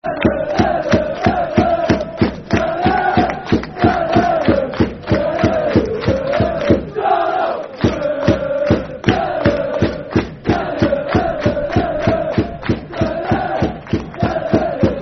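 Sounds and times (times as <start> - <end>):
football crowd chanting: 0.0 - 15.0.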